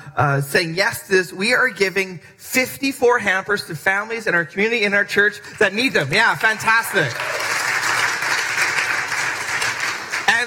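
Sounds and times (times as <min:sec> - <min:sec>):
speech: 0:00.2 - 0:07.5
church congregation clapping: 0:05.5 - 0:10.4.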